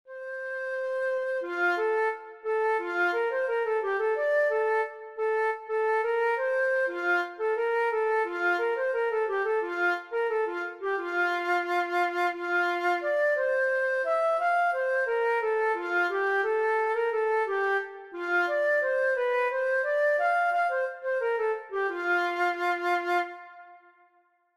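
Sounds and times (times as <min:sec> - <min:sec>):
flute: 0:00.1 - 0:24.5.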